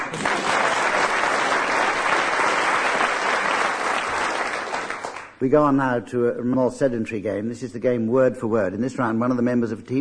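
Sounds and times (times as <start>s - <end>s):
comedy panel game audience applauding the winning team: 0.0s - 5.4s
speech: 5.4s - 9.9s.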